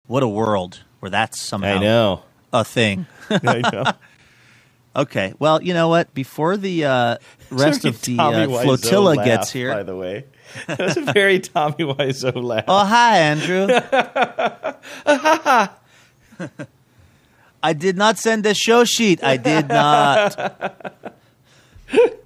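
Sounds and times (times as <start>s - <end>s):
person talking: 0.1s - 4.0s, 5.0s - 14.2s, 17.6s - 21.1s
person laughing: 3.2s - 4.1s, 12.3s - 16.7s, 19.3s - 22.2s.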